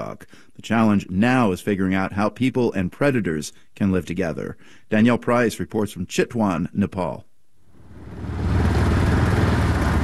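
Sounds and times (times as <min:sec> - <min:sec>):
speech: 0:00.1 - 0:07.3
motorcycle engine while riding: 0:07.8 - 0:10.0.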